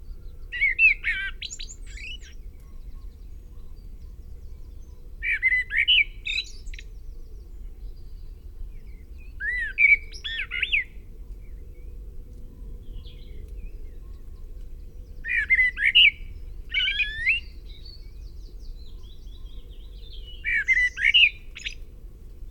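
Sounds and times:
common blackbird Turdus merula song of warbled whistles and scratchy twitters: 0.0 - 22.4.

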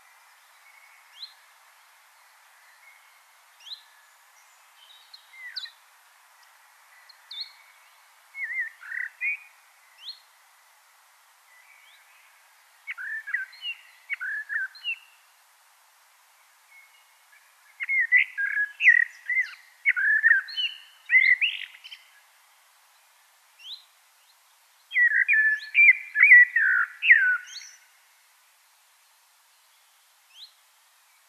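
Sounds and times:
faint background hiss: 0.0 - 31.2
common blackbird song: 2.6 - 5.8, 6.9 - 10.3, 11.6 - 15.3, 16.7 - 22.2, 23.6 - 28.0.

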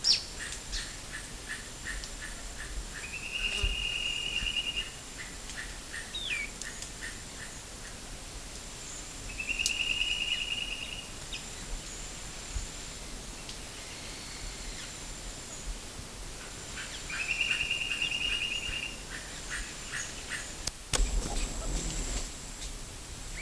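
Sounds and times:
steady background hiss: 0.0 - 23.3
bird buzzy trills: 21.0 - 22.2.

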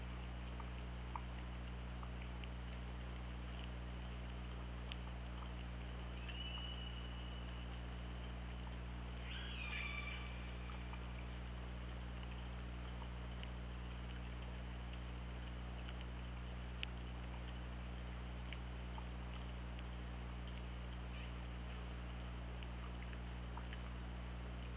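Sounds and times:
faint ticks: 0.0 - 24.7
steady low hum: 0.0 - 24.7
killer whale call: 9.2 - 10.5.

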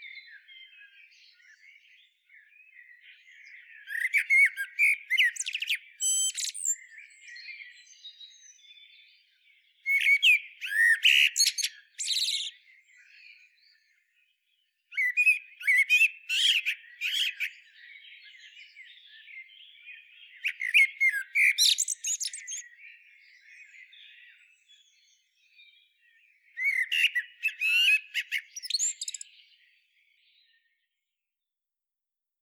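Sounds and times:
common blackbird singing: 0.0 - 30.8
quiet background birdsong: 0.0 - 31.6.

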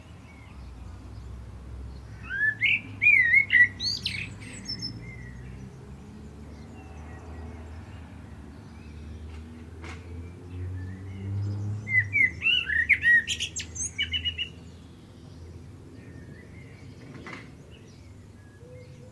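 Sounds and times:
common blackbird whistling: 2.2 - 5.3, 11.9 - 14.6.

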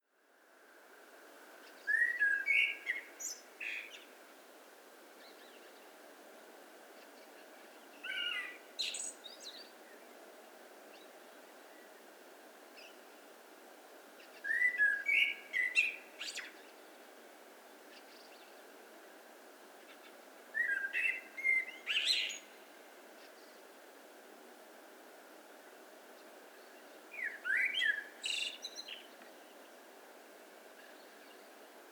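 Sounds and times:
common blackbird song of fluty whistles and high chattering: 1.8 - 4.0, 14.4 - 16.6, 20.6 - 22.5, 27.1 - 29.1.

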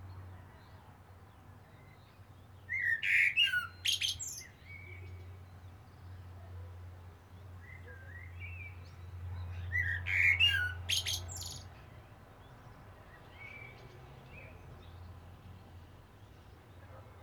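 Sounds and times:
common blackbird singing: 1.8 - 5.3, 7.6 - 11.7.

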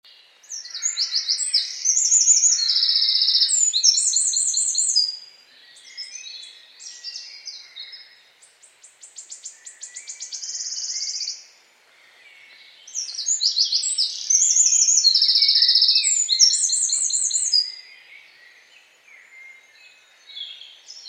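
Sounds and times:
Eurasian wren song: 0.1 - 21.0.

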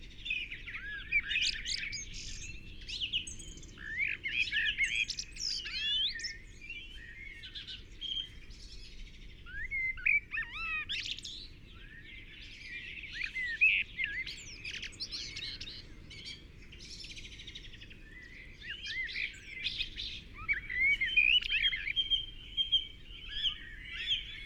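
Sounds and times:
Eurasian blackbird song: 0.2 - 24.4.

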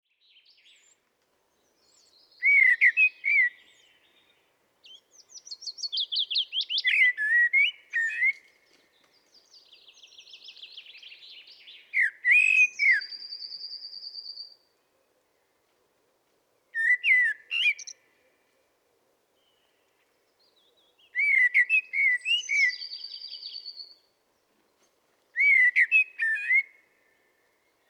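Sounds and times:
common blackbird singing: 1.7 - 8.4, 9.2 - 14.6, 16.8 - 18.0, 20.4 - 24.0, 25.4 - 26.7.

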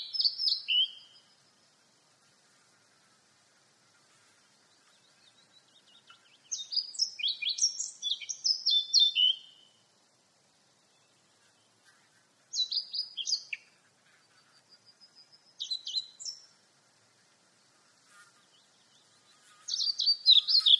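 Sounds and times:
Eurasian blackcap warbling song: 0.0 - 1.4, 4.7 - 9.8, 12.5 - 13.8, 15.1 - 16.5, 18.6 - 20.7.

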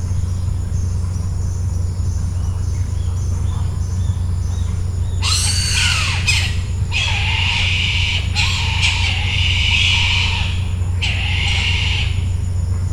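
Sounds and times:
steady low hum: 0.0 - 12.9
bird harsh raspy squawks: 5.2 - 12.4.

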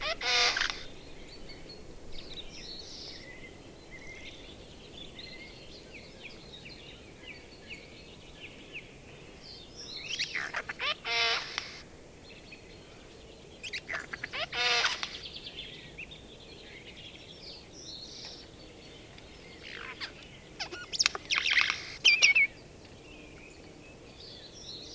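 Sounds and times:
Eurasian jay scratchy calls, Garrulus glandarius: 0.0 - 0.9, 10.4 - 11.8, 13.9 - 15.2, 19.8 - 22.4.

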